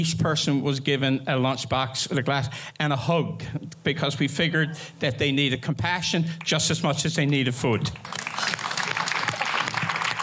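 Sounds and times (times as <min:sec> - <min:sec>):
speech: 0:00.0 - 0:08.2
audience applause: 0:08.0 - 0:10.2.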